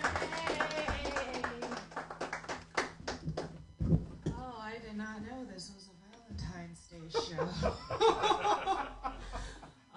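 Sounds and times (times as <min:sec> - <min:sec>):
faint voices or cheering: 0:00.0 - 0:01.8
round of applause: 0:00.0 - 0:03.2
speech: 0:05.1 - 0:08.3
laughter: 0:07.2 - 0:09.7.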